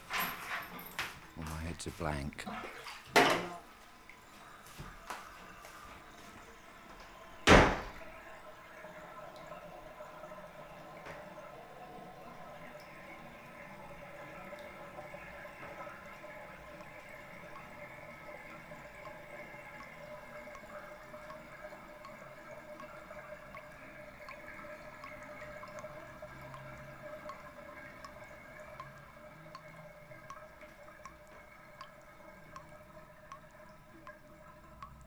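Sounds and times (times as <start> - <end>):
water drops dripping: 0.0 - 35.0
speech: 1.7 - 3.5.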